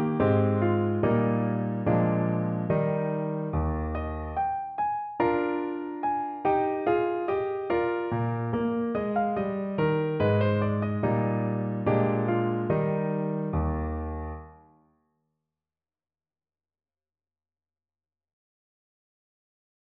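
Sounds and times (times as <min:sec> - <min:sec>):
andantino on piano: 0:00.0 - 0:14.6.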